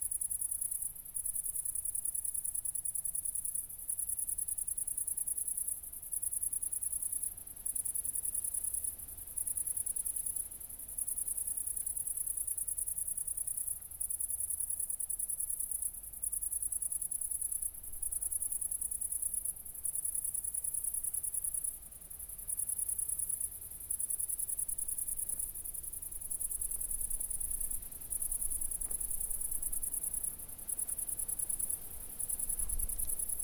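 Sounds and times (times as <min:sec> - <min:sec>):
cricket song: 0:00.0 - 0:33.4
faint low rumble: 0:24.6 - 0:33.4.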